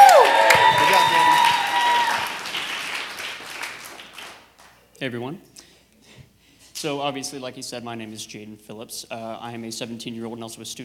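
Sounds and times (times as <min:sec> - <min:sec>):
shrill whoops and whistles: 0:00.0 - 0:02.4
audience applause: 0:00.0 - 0:04.7
speech: 0:05.0 - 0:05.6, 0:06.8 - 0:10.8.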